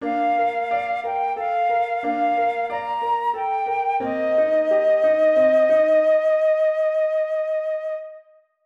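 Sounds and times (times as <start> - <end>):
flute sonata with ornamentation: 0.0 - 8.6.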